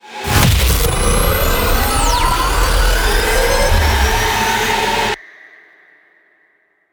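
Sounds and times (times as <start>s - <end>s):
combat music: 0.1s - 5.2s.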